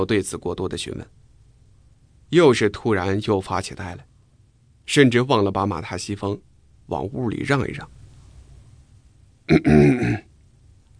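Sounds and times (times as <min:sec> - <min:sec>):
speech: 0:00.0 - 0:01.2, 0:02.3 - 0:04.1, 0:04.9 - 0:08.0, 0:09.5 - 0:10.3
awkward throaty cough: 0:09.5 - 0:10.3.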